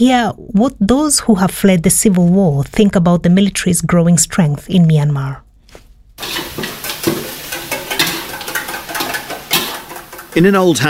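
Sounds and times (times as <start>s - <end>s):
speech: 0.0s - 5.4s, 6.2s - 6.7s, 10.4s - 10.8s
stirring scrapes in a pan: 6.2s - 10.5s
fish eggs sizzling in a pan in an old house in Mae Sot: 6.2s - 10.8s.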